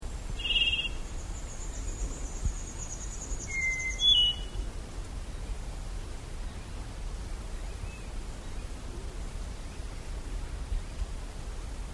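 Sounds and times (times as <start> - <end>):
faint high steady whine: 0.0 - 11.9
Plumbeous black-tyrant song with buzzy note and rising whistle: 0.4 - 1.0, 2.8 - 4.6.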